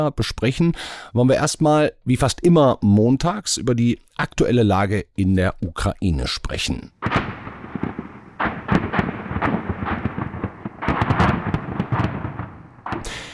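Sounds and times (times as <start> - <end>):
speech: 0.0 - 7.3
artillery fire in war zone: 7.0 - 13.3.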